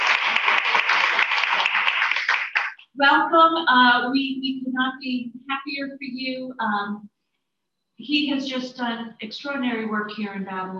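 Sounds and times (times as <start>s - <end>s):
audience applause at a ceremony honoring newly tenured teachers in Babylon: 0.0s - 2.8s
speech: 3.0s - 7.1s, 8.0s - 10.7s.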